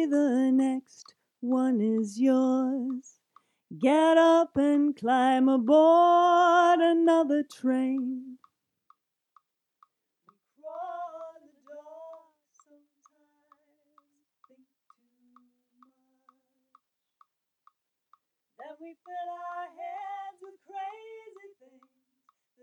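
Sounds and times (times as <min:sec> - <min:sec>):
middle vocal harmony: 0:00.0 - 0:08.4, 0:10.6 - 0:16.4, 0:18.6 - 0:21.9.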